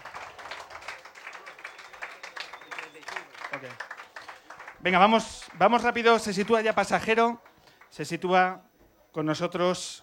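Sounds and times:
audience applause: 0.0 - 6.7
speech: 3.6 - 3.9, 4.8 - 10.0.

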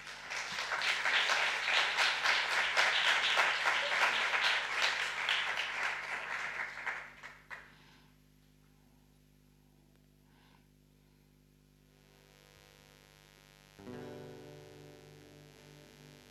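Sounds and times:
audience applause: 0.0 - 7.7.

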